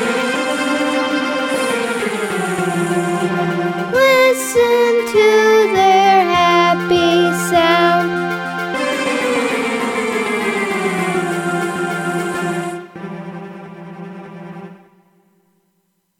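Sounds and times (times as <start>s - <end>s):
bees buzzing: 0.0s - 12.9s.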